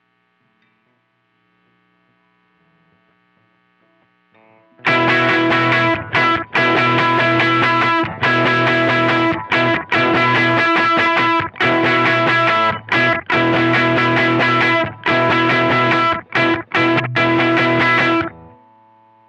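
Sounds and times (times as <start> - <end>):
slow riff: 4.8 - 19.2.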